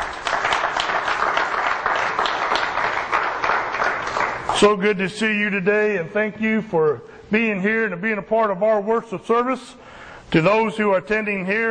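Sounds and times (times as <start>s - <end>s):
audience applause: 0.0s - 4.7s
speech: 4.6s - 11.6s.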